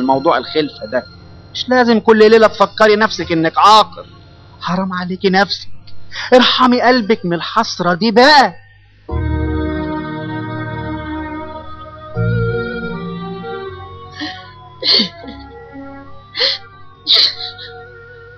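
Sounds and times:
steady tonal background: 0.0s - 5.9s, 8.6s - 18.3s
speech: 0.0s - 8.6s, 14.8s - 15.2s
woman sobbing: 14.0s - 18.3s.

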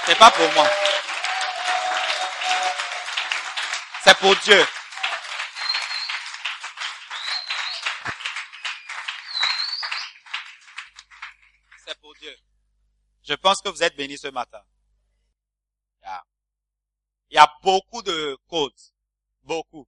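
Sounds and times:
audience applause: 0.0s - 12.0s
speech: 0.1s - 1.0s, 4.0s - 4.8s, 13.4s - 14.7s, 17.4s - 18.8s.

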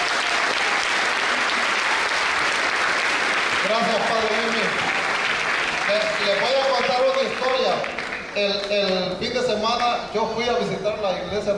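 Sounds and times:
audience applause: 0.0s - 9.1s
speech: 3.7s - 4.9s, 5.9s - 11.5s.

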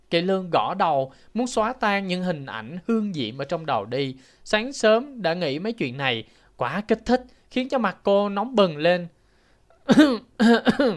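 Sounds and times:
speech: 0.1s - 9.2s, 9.9s - 10.9s
woman clearing her throat: 9.8s - 10.9s.

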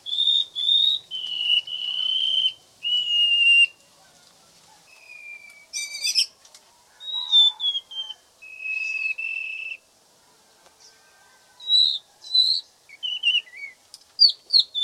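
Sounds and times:
white-rumped shama singing long whistles and varied whistled phrases: 0.0s - 3.8s, 4.9s - 6.3s, 7.0s - 9.8s, 11.6s - 14.8s.

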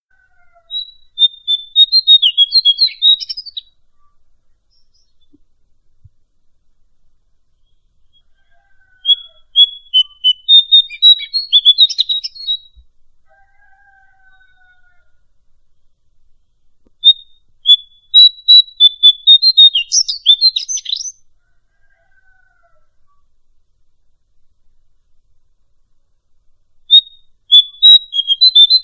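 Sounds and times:
bird song: 0.1s - 5.6s, 7.5s - 12.9s, 13.9s - 21.4s, 26.8s - 28.8s.

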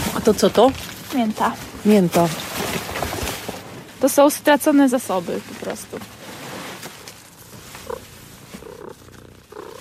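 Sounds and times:
speech: 0.3s - 2.5s, 4.0s - 6.2s
cat purring: 7.2s - 9.7s.

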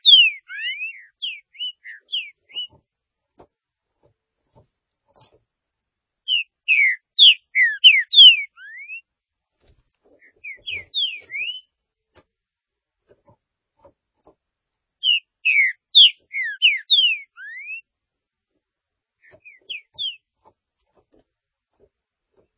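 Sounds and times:
green-winged saltator whistled song: 0.0s - 2.8s, 6.3s - 9.1s, 10.2s - 11.7s, 15.0s - 17.9s, 19.2s - 20.3s.

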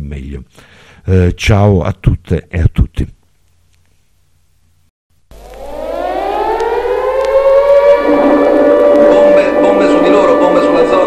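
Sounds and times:
speech: 0.1s - 3.2s
air raid siren wailing: 5.3s - 11.0s.

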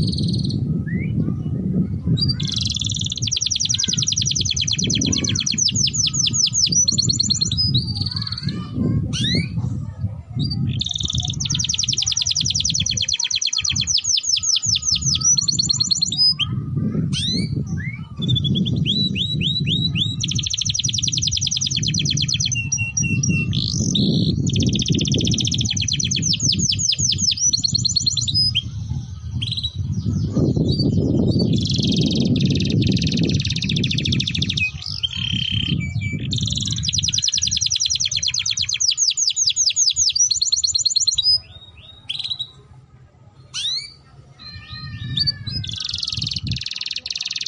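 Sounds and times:
domestic canary singing: 0.0s - 1.6s, 2.2s - 9.7s, 10.4s - 42.7s, 43.5s - 47.4s.

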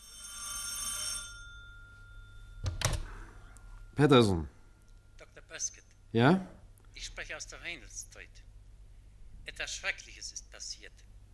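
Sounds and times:
telephone bell ringing: 0.0s - 4.4s
speech: 4.0s - 4.6s, 5.6s - 8.5s, 9.5s - 11.1s.

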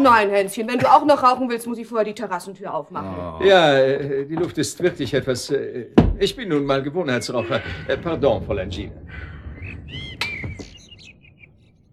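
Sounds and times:
speech: 0.0s - 9.3s
blackbirds singing: 8.9s - 11.9s.

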